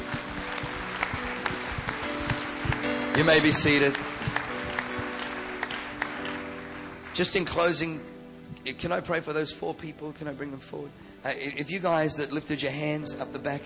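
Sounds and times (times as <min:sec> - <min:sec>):
audience applause: 0:00.0 - 0:07.8
speech: 0:03.2 - 0:04.1, 0:07.2 - 0:13.6.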